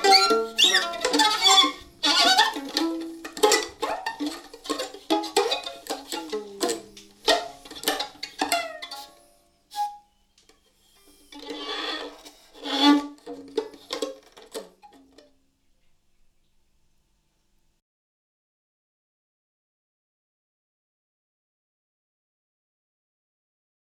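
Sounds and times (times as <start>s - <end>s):
violin: 0.0s - 10.1s, 10.8s - 15.2s.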